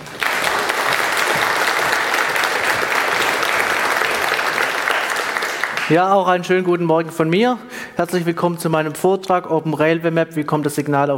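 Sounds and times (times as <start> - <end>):
audience applause: 0.0 - 6.7
speech: 5.9 - 11.1.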